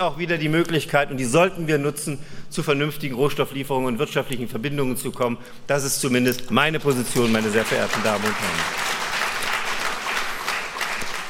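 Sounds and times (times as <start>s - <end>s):
speech: 0.0s - 9.0s
audience applause: 6.9s - 11.2s.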